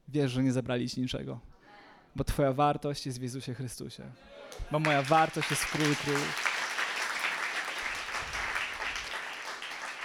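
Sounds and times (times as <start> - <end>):
speech: 0.1 - 1.5, 2.1 - 6.5
crowd clapping: 4.5 - 10.0.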